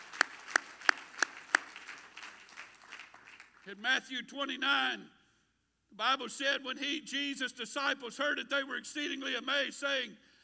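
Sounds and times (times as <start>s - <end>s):
audience clapping hands: 0.0s - 3.8s
speech: 3.7s - 5.2s, 5.9s - 10.3s.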